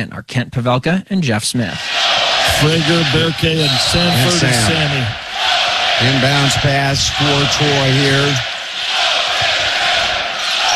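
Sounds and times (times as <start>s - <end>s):
speech: 0.0s - 8.5s
basketball crowd chanting in an arena: 1.8s - 10.7s
laughter: 2.4s - 5.2s, 6.0s - 8.4s.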